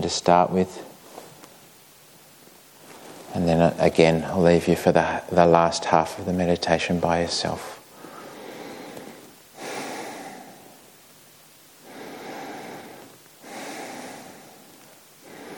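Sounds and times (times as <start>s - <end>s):
speech: 0.1s - 0.9s, 3.4s - 7.8s
deep heavy breaths: 7.7s - 11.0s, 11.7s - 15.5s.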